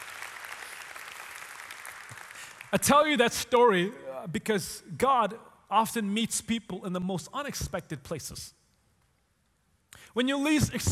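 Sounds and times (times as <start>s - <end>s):
audience clapping: 0.0s - 2.9s
speech: 2.7s - 8.6s, 10.1s - 10.9s.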